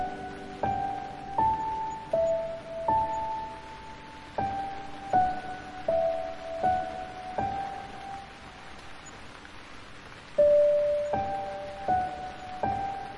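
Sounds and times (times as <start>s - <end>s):
calming piano music: 0.0s - 13.1s
rain: 0.0s - 13.1s.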